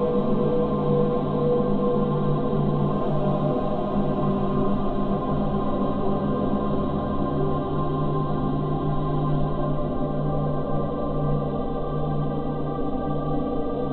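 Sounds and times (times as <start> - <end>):
synth choir ambience: 0.0 - 13.9.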